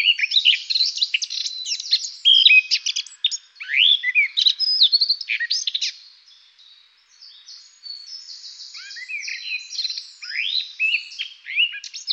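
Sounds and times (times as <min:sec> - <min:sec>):
Eurasian blackcap singing a hurried warble: 0:00.0 - 0:06.0, 0:07.2 - 0:12.1.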